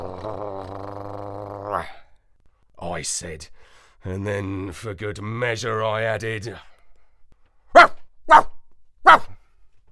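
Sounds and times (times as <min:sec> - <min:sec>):
person imitating dog barks: 0:00.0 - 0:02.0, 0:07.7 - 0:09.4
speech: 0:00.2 - 0:00.9, 0:01.7 - 0:02.0, 0:03.0 - 0:06.7, 0:08.3 - 0:08.5.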